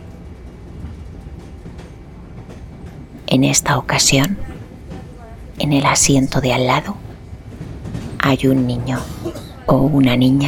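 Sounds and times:
train rolling on rails: 0.0s - 10.4s
speech: 3.4s - 4.6s, 5.6s - 7.0s, 8.3s - 10.4s.

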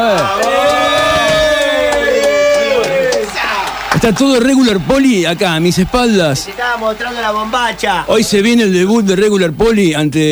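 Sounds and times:
speech: 0.0s - 0.5s, 4.0s - 10.3s
scattered claps: 0.0s - 8.0s
crowd cheering and shouting: 0.0s - 9.1s.

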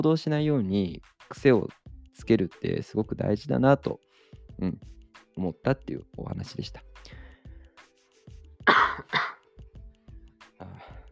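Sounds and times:
speech: 0.0s - 7.2s
throat clearing: 8.6s - 9.4s
person coughing: 8.6s - 9.5s.

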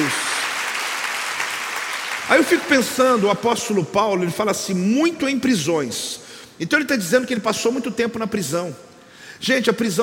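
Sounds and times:
crowd applauding: 0.0s - 3.2s
speech: 2.3s - 10.0s.

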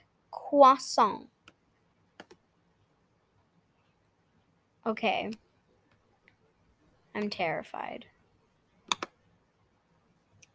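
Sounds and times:
speech: 0.5s - 1.3s, 4.8s - 5.4s, 7.2s - 8.1s
computer mouse clicks: 2.2s - 2.4s, 8.8s - 9.2s.

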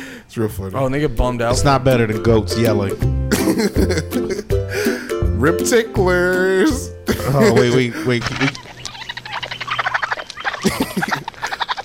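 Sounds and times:
speech: 0.3s - 4.6s, 5.4s - 8.6s
laughter: 3.3s - 4.5s, 7.1s - 11.8s
baby raccoons chittering: 7.4s - 11.8s.

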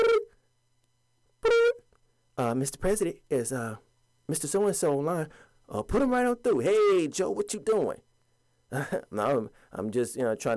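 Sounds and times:
telephone ringing: 0.0s - 0.4s, 1.4s - 1.8s
speech: 2.4s - 8.1s, 8.7s - 10.5s.

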